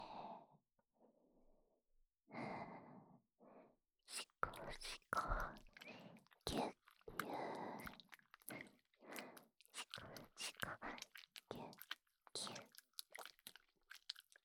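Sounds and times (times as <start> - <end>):
soothing ear licking in the left ear: 4.1 - 14.4.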